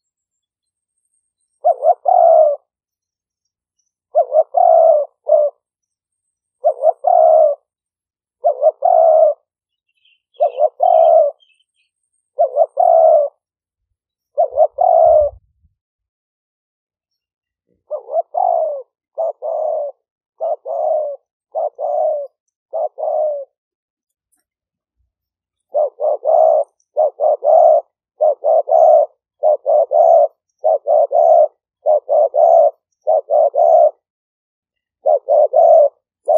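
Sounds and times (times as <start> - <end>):
spotted dove cooing: 1.6 - 2.8, 4.1 - 5.7, 6.6 - 13.5, 14.3 - 15.7, 17.7 - 23.6, 25.6 - 34.1, 35.0 - 36.3.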